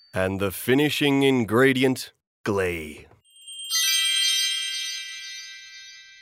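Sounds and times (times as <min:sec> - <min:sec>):
speech: 0:00.2 - 0:03.1
tiny bell tinkling: 0:03.2 - 0:06.2.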